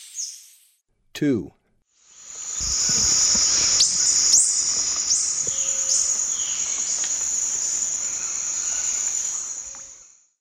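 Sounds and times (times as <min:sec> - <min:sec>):
White-bearded Hermit from the Eastern Lowlands of South America: 0:02.2 - 0:10.0.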